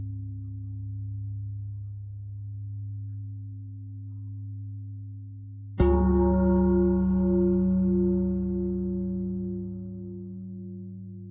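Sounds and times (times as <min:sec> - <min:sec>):
pentatonic bell melody: 0:05.8 - 0:11.2.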